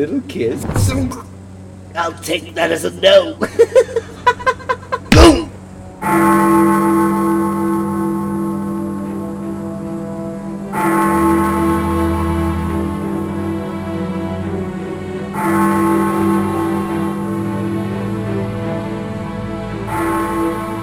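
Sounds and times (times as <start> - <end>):
speech: 0.0 - 1.3, 2.0 - 4.2, 6.0 - 6.5
laughter: 3.4 - 5.4
deep clock tower bell striking midnight: 6.0 - 19.1, 19.9 - 20.8.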